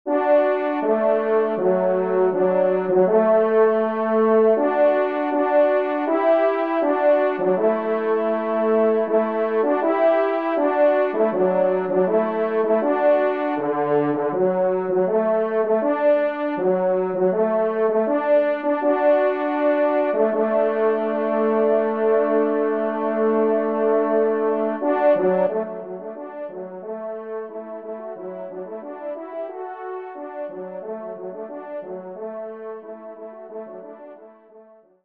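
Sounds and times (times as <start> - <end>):
polka music: 0.1 - 33.9
hunting horn: 0.1 - 34.3.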